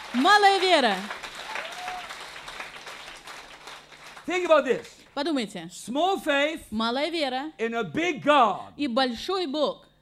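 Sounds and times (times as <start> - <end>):
church congregation applauding during a bilingual sermon: 0.0 - 5.1
speech: 0.2 - 1.2, 4.3 - 9.9.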